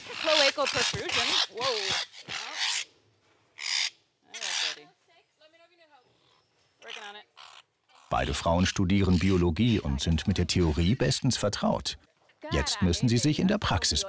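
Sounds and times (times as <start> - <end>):
parrots squawking while being chased: 0.0 - 2.9, 3.6 - 4.9, 6.2 - 11.2
speech: 0.1 - 2.4, 8.2 - 14.0.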